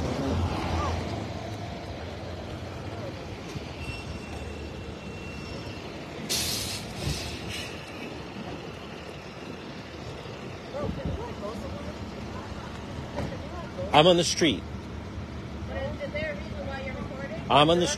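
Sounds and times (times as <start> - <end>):
tow truck arriving: 0.0 - 17.9
tow truck air brakes hissing: 3.8 - 8.2
speech: 14.0 - 14.7, 17.5 - 17.9.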